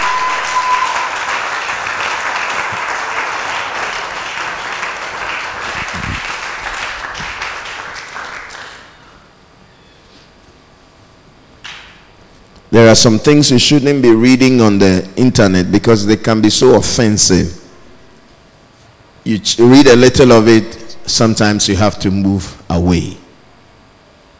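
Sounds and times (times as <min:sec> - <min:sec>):
audience clapping: 0:00.0 - 0:09.0
speech: 0:12.8 - 0:17.6, 0:19.4 - 0:23.2.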